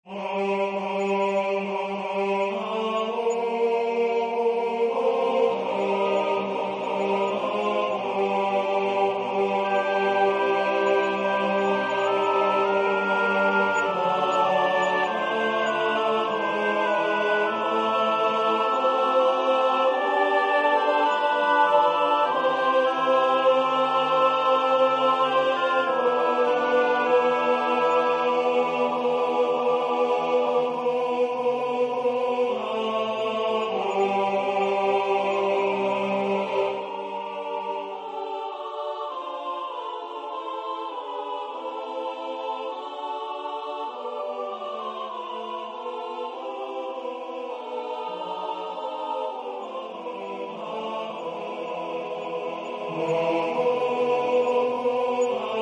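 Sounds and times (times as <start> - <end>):
tenor singing: 0.1 - 55.6.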